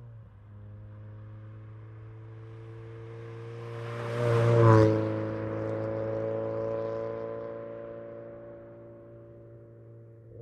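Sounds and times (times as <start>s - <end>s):
Acura Integra on long approach, passing medium fast, shifting and decelerating: 2.6s - 8.5s.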